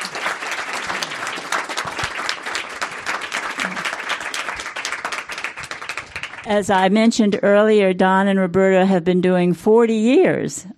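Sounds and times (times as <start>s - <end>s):
audience applause: 0.0s - 6.5s
speech: 6.5s - 10.7s.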